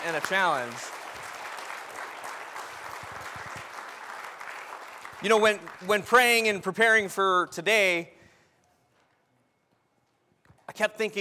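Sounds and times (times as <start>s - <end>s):
speech: 0.0s - 1.0s, 5.2s - 8.2s, 10.8s - 11.1s
audience applause for graduates: 0.0s - 6.4s.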